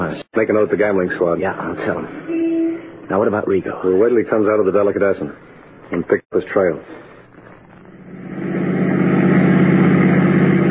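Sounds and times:
speech: 0.1s - 2.5s, 3.1s - 7.0s
car engine idling: 8.1s - 10.6s.

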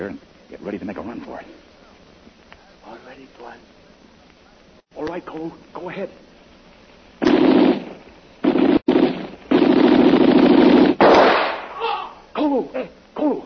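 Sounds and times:
speech: 0.0s - 1.7s, 2.9s - 3.8s, 5.0s - 6.3s
gunshots: 7.2s - 11.8s.

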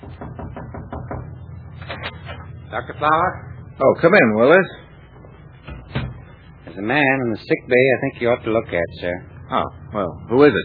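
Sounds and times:
rapid knocking on a medical officer's door aboard a wartime ship: 0.0s - 1.4s
speech: 2.7s - 4.8s, 6.8s - 10.6s.

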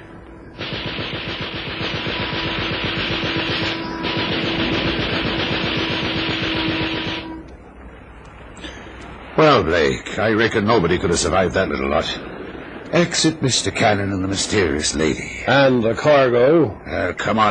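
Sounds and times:
steady droning hum: 0.0s - 17.4s
Vickers K machine gun firing: 0.6s - 7.4s
speech: 9.4s - 12.3s, 12.9s - 17.4s.

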